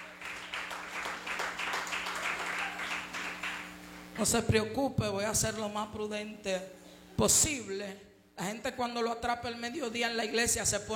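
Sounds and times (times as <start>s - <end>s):
audience applause: 0.0s - 4.0s
speech: 4.2s - 10.9s.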